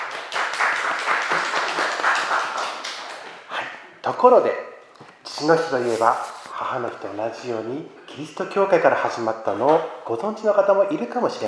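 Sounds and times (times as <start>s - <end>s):
crowd applauding: 0.0s - 3.4s
speech: 4.1s - 4.7s, 5.4s - 11.4s.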